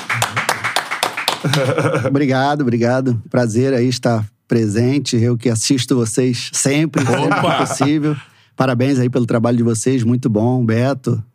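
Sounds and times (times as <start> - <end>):
audience clapping in rhythm: 0.0 - 2.1
laughter: 1.4 - 2.2, 7.0 - 8.3
speech: 1.4 - 11.3.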